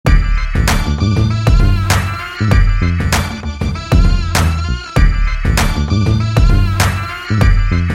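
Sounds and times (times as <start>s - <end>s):
background music: 0.1s - 7.9s.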